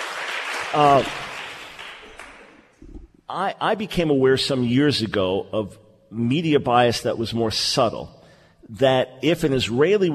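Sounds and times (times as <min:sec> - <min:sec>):
applause from a live studio audience: 0:00.0 - 0:02.7
speech: 0:00.7 - 0:01.2, 0:03.3 - 0:10.1.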